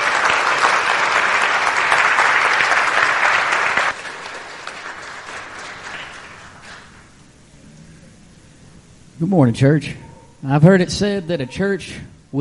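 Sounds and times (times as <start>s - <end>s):
audience applause: 0.0s - 7.2s
speech: 9.2s - 12.3s.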